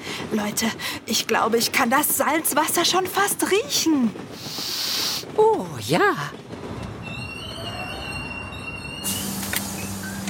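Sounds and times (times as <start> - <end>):
speech: 0.2 - 6.4
train wheels squealing: 6.7 - 10.2
train slowing to a halt: 6.8 - 10.2.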